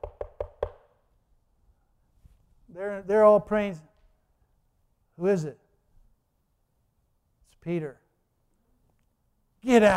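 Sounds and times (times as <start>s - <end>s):
knocking on a door: 0.0s - 0.8s
speech: 2.8s - 3.9s, 5.2s - 5.6s, 7.6s - 8.0s, 9.6s - 9.9s.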